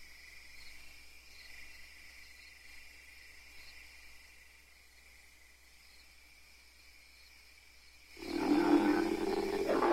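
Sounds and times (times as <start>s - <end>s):
ape letting out a low rough growl: 8.2s - 9.9s.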